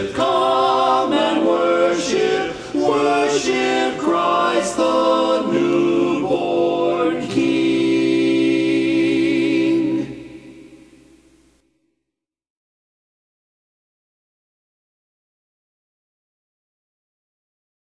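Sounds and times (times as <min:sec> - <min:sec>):
tenor singing: 0:00.0 - 0:10.9.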